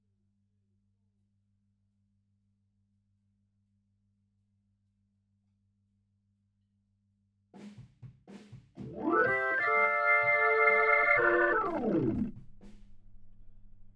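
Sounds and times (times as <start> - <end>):
Hammond organ: 8.8 - 12.4.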